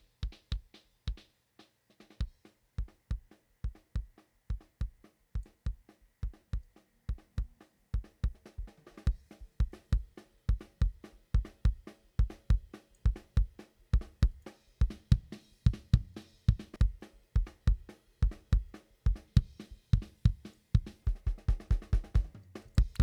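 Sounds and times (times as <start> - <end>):
equalized kick drum: 0.0 - 1.2, 2.2 - 23.0.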